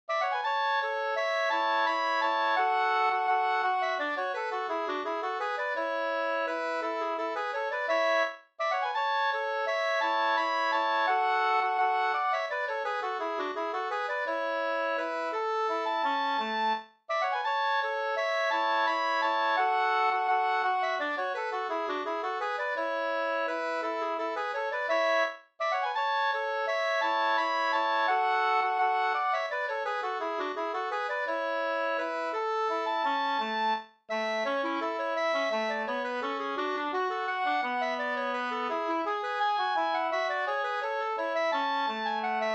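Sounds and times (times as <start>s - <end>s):
two-part waltz in A major: 0.2s - 42.5s.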